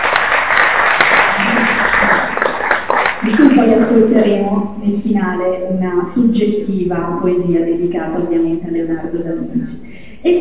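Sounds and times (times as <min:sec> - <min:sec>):
audience applause: 0:00.0 - 0:03.7
speech: 0:03.3 - 0:10.4.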